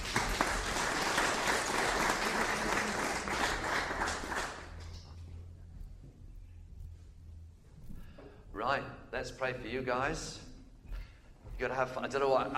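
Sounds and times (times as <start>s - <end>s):
room full of people applauding: 0.0s - 5.0s
low hum: 0.0s - 12.5s
speech: 8.7s - 10.4s, 11.6s - 12.5s.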